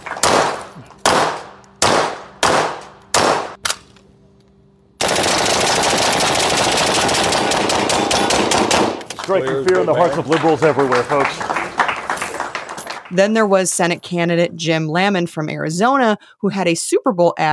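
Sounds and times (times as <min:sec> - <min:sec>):
gunfire at a shooting range: 0:00.2 - 0:03.7, 0:05.0 - 0:09.1
speech: 0:09.3 - 0:11.5, 0:13.1 - 0:17.5.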